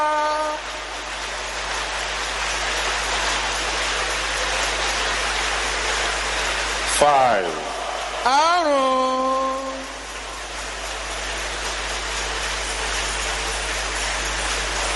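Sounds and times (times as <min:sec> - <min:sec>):
brief tonal hum: 0:00.0 - 0:01.8, 0:06.6 - 0:14.9
crowd clapping: 0:00.0 - 0:14.9
speech: 0:07.0 - 0:07.6, 0:08.2 - 0:09.2.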